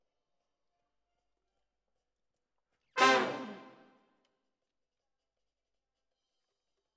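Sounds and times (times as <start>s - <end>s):
brass instruments: 3.0s - 3.9s.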